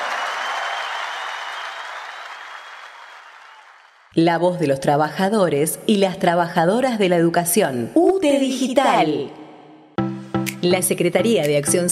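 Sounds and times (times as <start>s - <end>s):
audience applause: 0.0s - 4.1s
speech: 4.2s - 9.4s, 10.6s - 11.9s.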